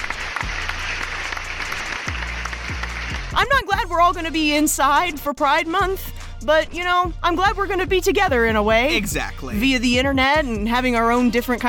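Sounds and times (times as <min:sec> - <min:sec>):
canned applause track: 0:00.0 - 0:03.5
speech: 0:03.4 - 0:11.6.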